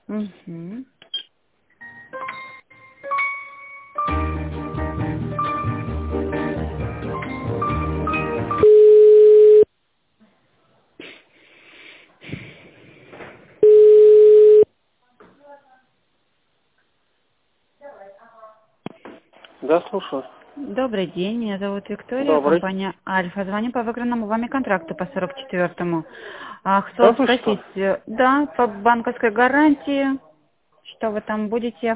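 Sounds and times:
speech: 0.1s - 1.0s, 19.7s - 30.2s, 30.8s - 31.9s
telephone line beeps while a call is transferred: 8.6s - 9.7s, 13.6s - 14.7s.

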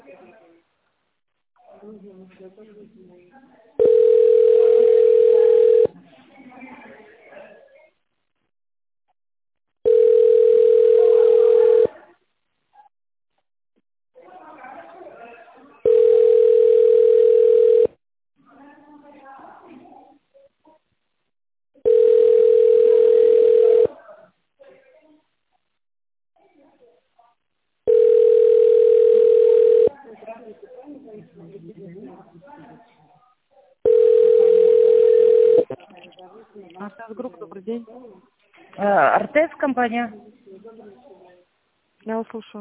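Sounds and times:
faint murmur of voices: 0.0s - 0.9s, 1.6s - 8.4s, 9.9s - 12.9s, 14.2s - 21.2s, 21.8s - 25.8s, 26.4s - 42.5s
speech: 1.9s - 7.7s, 38.9s - 40.3s, 42.1s - 42.5s
telephone ringback tone: 3.8s - 5.9s, 9.8s - 11.9s, 15.8s - 17.9s, 21.8s - 23.9s, 27.9s - 29.9s, 33.9s - 35.6s.

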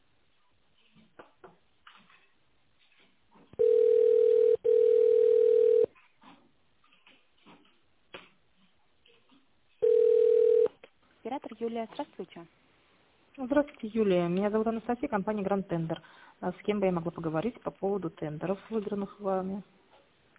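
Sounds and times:
telephone ringback tone: 3.6s - 5.9s, 9.8s - 10.7s
speech: 11.6s - 12.7s, 13.4s - 19.8s.

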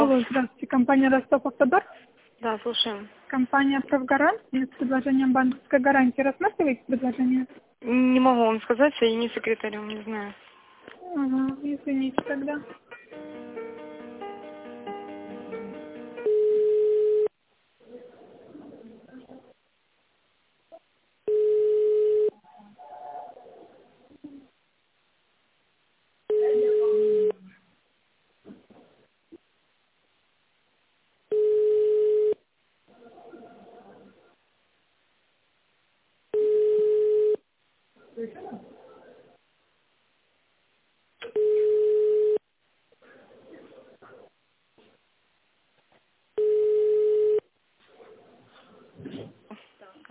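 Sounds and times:
speech: 0.1s - 10.4s, 11.1s - 13.6s
telephone ringback tone of unanswered call: 16.2s - 17.3s, 21.3s - 22.4s, 26.3s - 27.4s, 31.3s - 32.4s, 36.4s - 37.4s, 41.4s - 42.4s, 46.4s - 47.4s.

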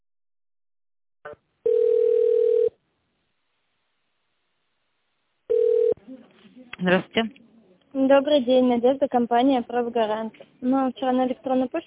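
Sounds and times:
speech: 1.2s - 1.5s, 6.8s - 11.8s
telephone ringback tone: 1.6s - 2.8s, 5.5s - 6.0s.

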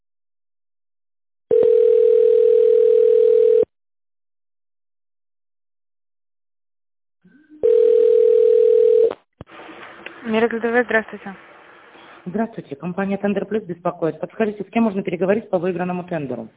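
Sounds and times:
telephone ringback tone while a call connects: 1.5s - 3.7s, 7.6s - 9.1s
speech: 10.4s - 11.5s, 12.2s - 16.5s.

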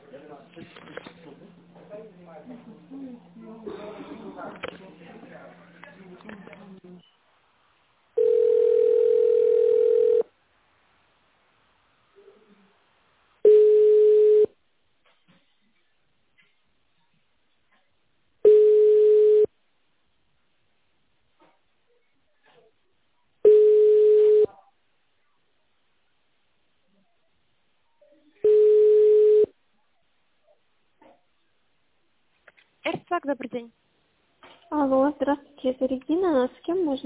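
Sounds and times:
steady telephone line tone during a call transfer: 8.2s - 10.3s, 13.4s - 14.5s, 18.4s - 19.5s, 23.4s - 24.6s, 28.4s - 29.5s
speech: 33.2s - 33.8s, 34.7s - 37.0s.

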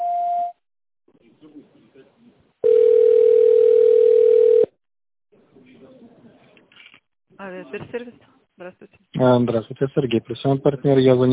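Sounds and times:
telephone tone signal on answering line: 0.0s - 0.6s, 2.6s - 4.7s
speech: 7.7s - 11.3s.

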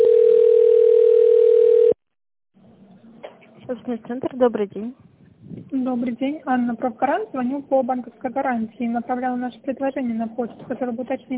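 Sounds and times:
telephone ringback tone while connecting to an operator: 0.0s - 2.0s
speech: 3.8s - 5.1s, 5.7s - 11.3s.

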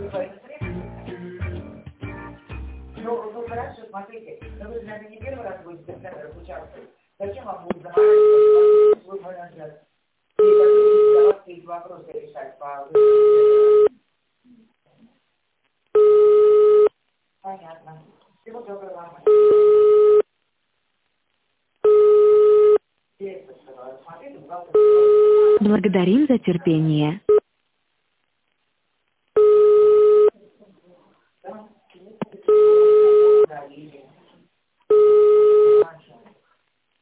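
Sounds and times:
speech: 3.1s - 14.8s, 17.4s - 20.2s, 23.2s - 27.3s
telephone line beeps while a call is connected: 8.0s - 9.0s, 10.4s - 11.4s, 13.0s - 13.9s, 16.0s - 16.9s, 19.3s - 20.2s, 21.8s - 22.8s, 24.8s - 25.7s, 29.4s - 30.3s, 32.5s - 33.5s, 34.9s - 35.8s.

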